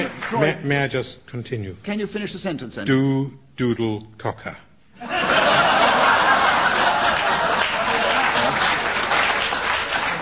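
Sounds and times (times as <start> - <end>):
speech: 0.3 - 5.2
scattered audience chuckles and laughter: 5.0 - 9.1
lingering audience applause: 5.6 - 10.2.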